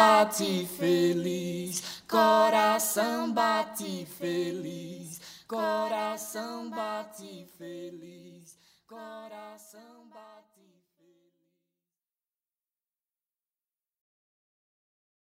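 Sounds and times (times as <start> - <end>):
a cappella singing: 0.0 - 11.5.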